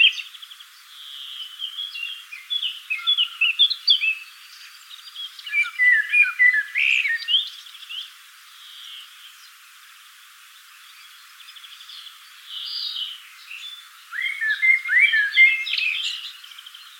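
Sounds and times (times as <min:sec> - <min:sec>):
Eurasian blackbird Turdus merula calling: 0:00.0 - 0:00.4, 0:01.1 - 0:08.1, 0:11.6 - 0:16.9.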